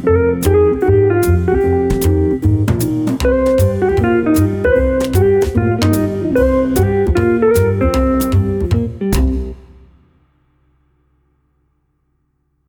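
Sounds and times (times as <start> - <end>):
live jazz gig in a smoky bar: 0.0 - 9.8.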